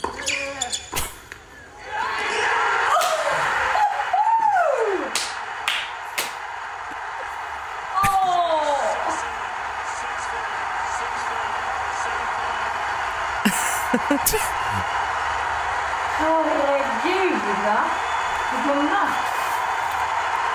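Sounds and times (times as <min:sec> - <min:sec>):
tennis crowd cheering and roaring at the winning point: 0:01.6 - 0:20.5
laughter: 0:13.4 - 0:15.0
woman's high excited cries: 0:13.5 - 0:14.6.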